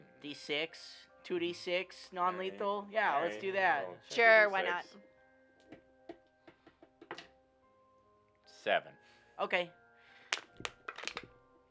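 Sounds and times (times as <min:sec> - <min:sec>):
speech: 0:00.2 - 0:05.1, 0:08.6 - 0:09.8
crumpling crunch sound effect: 0:10.4 - 0:11.3.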